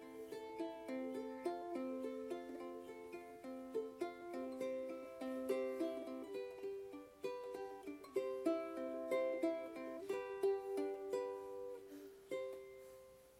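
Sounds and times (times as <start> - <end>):
eight-string instrument: 0.0 - 13.3.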